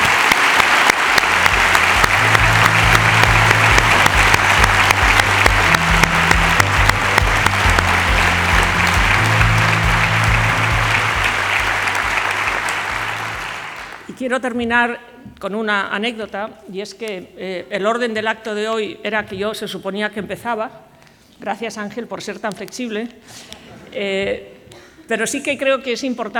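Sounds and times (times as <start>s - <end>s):
audience applause: 0.0s - 14.1s
low musical drone: 1.2s - 13.6s
speech: 14.3s - 24.5s, 25.1s - 26.3s.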